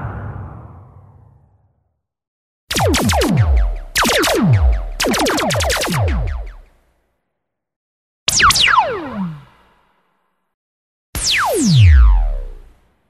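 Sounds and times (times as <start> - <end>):
laser sounds: 2.7 - 6.8, 8.3 - 9.6, 11.2 - 12.7.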